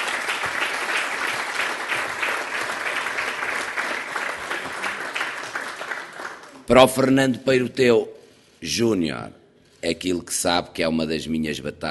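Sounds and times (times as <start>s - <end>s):
audience applause: 0.0s - 6.7s
speech: 6.7s - 11.9s.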